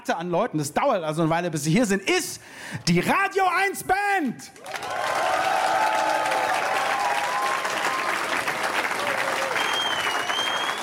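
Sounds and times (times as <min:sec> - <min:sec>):
speech: 0:00.0 - 0:05.5
audience applause: 0:04.6 - 0:10.8.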